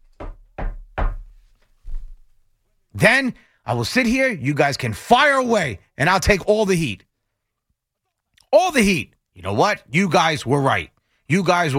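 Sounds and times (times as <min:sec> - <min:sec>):
dull hollow knocking on wood: 0:00.1 - 0:01.4
speech: 0:03.0 - 0:07.1, 0:08.5 - 0:11.7.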